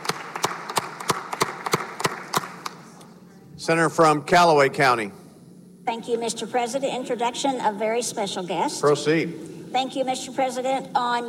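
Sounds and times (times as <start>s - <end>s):
applause in senate chamber: 0.0s - 2.9s
speech: 3.6s - 5.2s, 5.9s - 11.2s.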